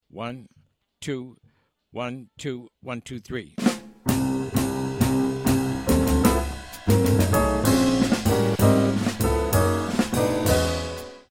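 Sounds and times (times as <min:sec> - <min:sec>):
fast backing track without melody: 0:03.6 - 0:11.2.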